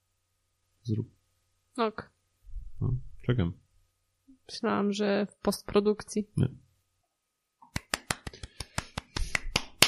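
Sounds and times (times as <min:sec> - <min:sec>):
speech: 0:00.9 - 0:01.2, 0:01.8 - 0:02.2, 0:02.8 - 0:03.6, 0:04.5 - 0:06.6
hand clapping: 0:07.6 - 0:09.8.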